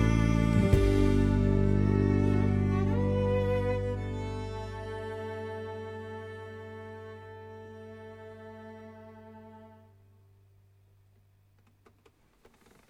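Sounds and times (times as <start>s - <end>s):
bass voice singing a Kyrie: 0.0s - 4.3s.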